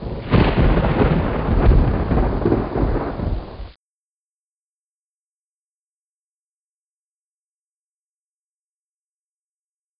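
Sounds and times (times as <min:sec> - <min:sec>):
thunder: 0:00.0 - 0:03.8.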